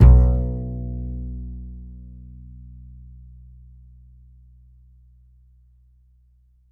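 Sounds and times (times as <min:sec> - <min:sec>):
upright acoustic bass A note: 0:00.0 - 0:03.7.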